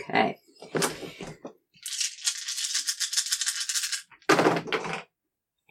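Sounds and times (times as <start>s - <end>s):
speech: 0.0s - 0.4s
dice being rolled: 1.8s - 5.0s.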